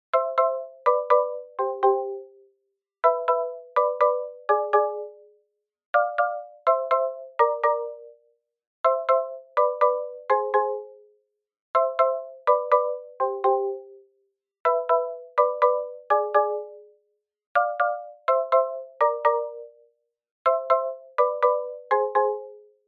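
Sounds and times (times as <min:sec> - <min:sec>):
marimba: 0:00.1 - 0:02.4, 0:03.0 - 0:05.3, 0:06.0 - 0:08.2, 0:08.8 - 0:11.1, 0:11.8 - 0:14.0, 0:14.7 - 0:16.9, 0:17.6 - 0:19.8, 0:20.5 - 0:22.8.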